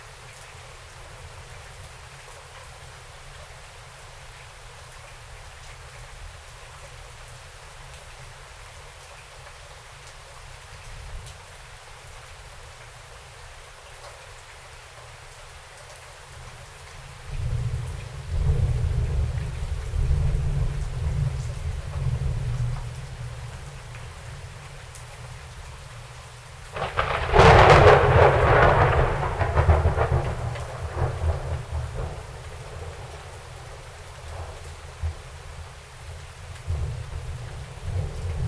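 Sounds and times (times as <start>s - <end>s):
rain outside: 0.0s - 38.4s
thunder outside: 17.4s - 22.8s, 26.8s - 33.4s.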